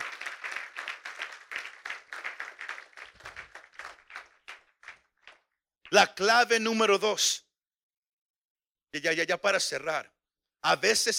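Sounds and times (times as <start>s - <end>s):
crowd clapping: 0.0s - 6.0s
speech: 5.9s - 7.4s, 8.9s - 11.1s.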